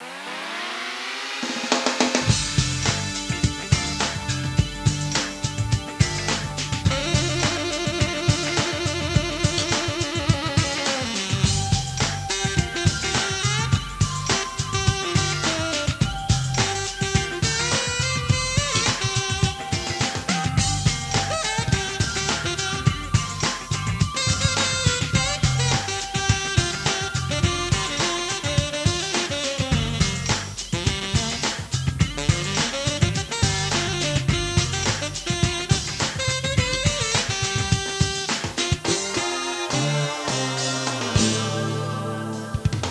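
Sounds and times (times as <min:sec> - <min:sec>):
saxophone: 0:00.0 - 0:42.8.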